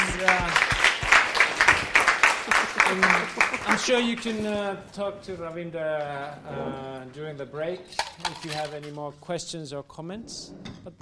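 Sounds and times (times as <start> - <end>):
audience applause: 0.0 - 4.2
speech: 3.9 - 10.9.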